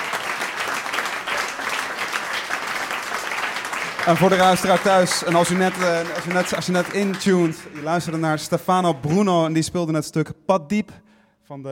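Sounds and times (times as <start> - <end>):
thunderous applause: 0.0 - 9.1
speech: 4.0 - 11.6.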